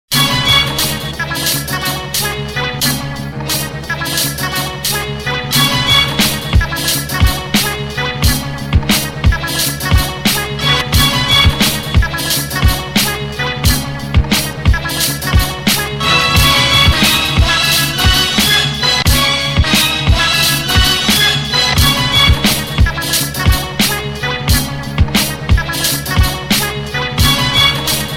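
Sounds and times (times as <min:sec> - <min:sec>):
music beat: 0:00.1 - 0:28.1.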